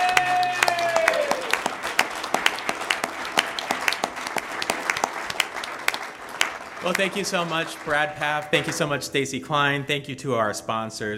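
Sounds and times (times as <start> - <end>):
audience applause: 0.0 - 8.7
speech: 6.8 - 11.1.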